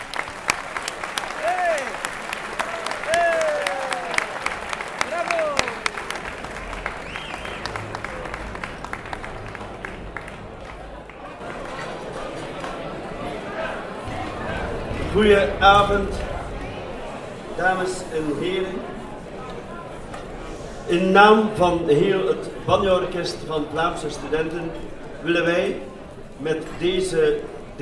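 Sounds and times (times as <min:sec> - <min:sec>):
audience applause welcoming performers: 0:00.0 - 0:19.9
speech: 0:15.2 - 0:16.2, 0:17.6 - 0:18.9, 0:20.9 - 0:27.8.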